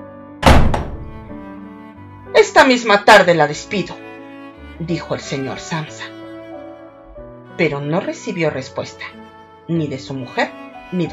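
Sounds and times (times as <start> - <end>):
door slamming shut: 0.4 - 1.4
rattling knock: 0.4 - 1.4
speech: 2.4 - 4.0, 4.8 - 6.2, 7.6 - 11.1.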